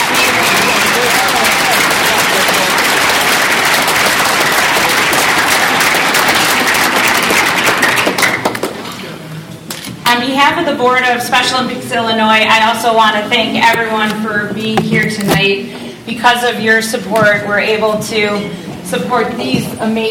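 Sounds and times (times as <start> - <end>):
audience applause: 0.0 - 8.8
speech: 10.6 - 20.0.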